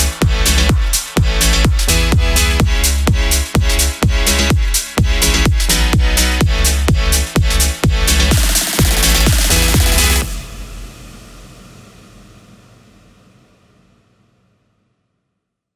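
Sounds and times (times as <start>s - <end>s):
big room house music in C minor: 0.0s - 12.4s.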